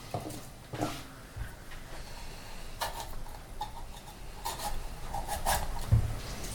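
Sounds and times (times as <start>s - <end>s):
knife slicing through a large bell pepper: 2.8s - 6.5s.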